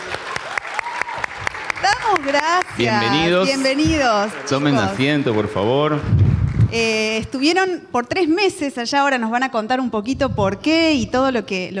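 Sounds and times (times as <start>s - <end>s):
welcome applause: 0.0s - 6.7s
speech: 2.1s - 11.7s.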